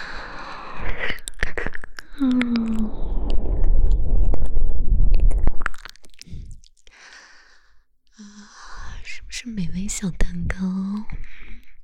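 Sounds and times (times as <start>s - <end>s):
ASMR ear licking with wet tongue and mouth sounds: 0.0s - 9.3s, 10.2s - 11.8s
speech: 2.2s - 2.7s, 10.0s - 10.7s.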